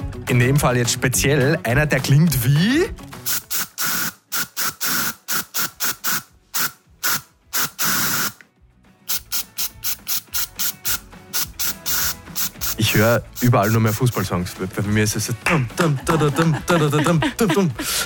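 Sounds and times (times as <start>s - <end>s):
speech: 0.3s - 3.4s, 13.0s - 18.0s
deodorant spray can hissing: 3.2s - 8.4s, 9.1s - 14.3s
laughter: 15.5s - 18.0s.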